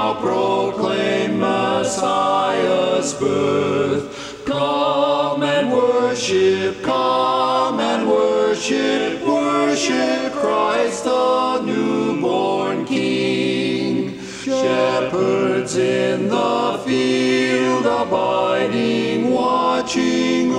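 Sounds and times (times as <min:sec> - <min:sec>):
baritone singing a cappella: 0:00.0 - 0:20.5.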